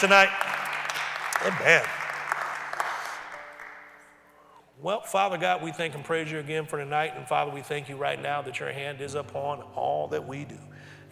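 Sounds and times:
speech: 0.0 - 0.4, 1.4 - 2.0, 4.8 - 11.1
audience applause: 0.0 - 4.1.

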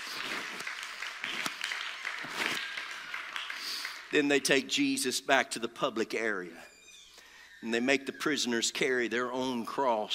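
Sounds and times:
audience clapping: 0.0 - 5.0
speech: 4.1 - 6.7, 7.6 - 10.1.

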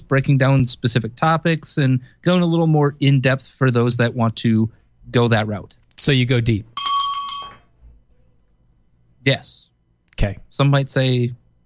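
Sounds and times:
speech: 0.1 - 6.7, 9.2 - 11.4
small bell ringing: 6.8 - 7.8.

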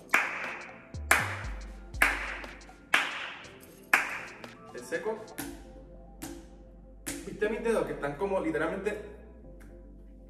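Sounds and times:
open-handed clap: 0.0 - 4.6, 6.2 - 6.5, 7.1 - 7.3
speech: 4.9 - 5.5, 7.4 - 9.2.

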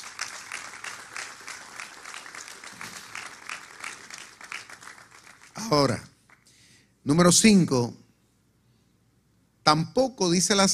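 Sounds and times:
crowd applauding: 0.0 - 6.5
speech: 5.6 - 6.1, 7.1 - 8.0, 9.7 - 10.7.

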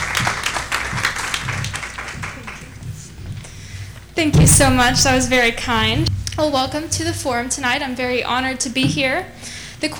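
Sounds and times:
audience applause welcoming a speaker to a forum: 0.0 - 3.1
speech: 4.2 - 9.9.

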